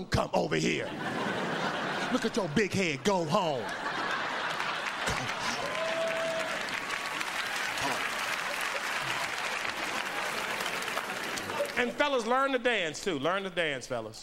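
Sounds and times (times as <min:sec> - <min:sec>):
speech: 0:00.0 - 0:01.2, 0:02.1 - 0:03.8, 0:11.8 - 0:14.2
laughter: 0:00.6 - 0:11.9
audience applause: 0:03.6 - 0:12.0.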